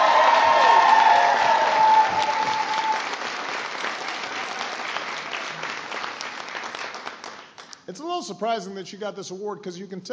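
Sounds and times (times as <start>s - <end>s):
audience applause: 0.0s - 7.6s
speech: 8.3s - 10.1s.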